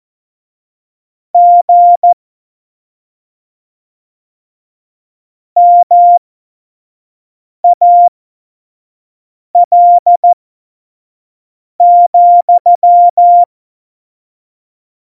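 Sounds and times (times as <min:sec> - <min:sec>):
morse code CW: 0:01.3 - 0:02.1, 0:07.7 - 0:08.1, 0:09.5 - 0:10.3, 0:11.8 - 0:13.5.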